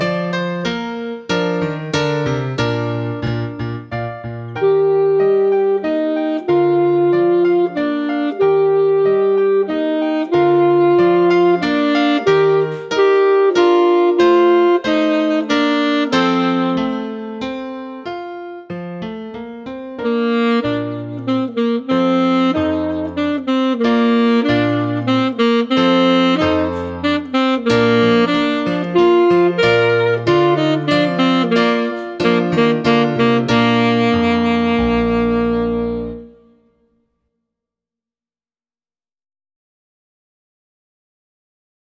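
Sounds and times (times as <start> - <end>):
baritone saxophone playing a minuet: 0.0 - 36.9.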